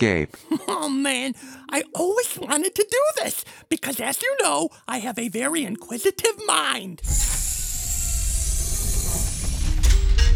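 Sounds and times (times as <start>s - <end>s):
speech: 0.0s - 7.6s
all the doors locking: 7.0s - 10.3s
low rumble: 7.0s - 10.3s.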